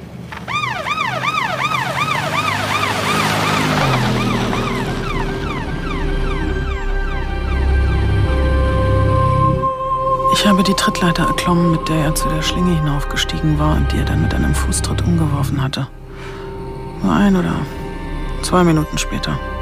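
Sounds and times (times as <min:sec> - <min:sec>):
emergency vehicle siren wailing: 0:00.3 - 0:12.9
speech: 0:10.6 - 0:16.0, 0:17.0 - 0:17.8, 0:18.4 - 0:19.5.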